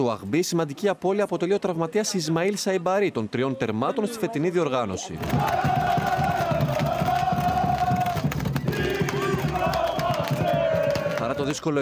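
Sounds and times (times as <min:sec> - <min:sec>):
speech: 0:00.0 - 0:06.2, 0:11.4 - 0:11.8
football fans chanting: 0:05.2 - 0:11.6.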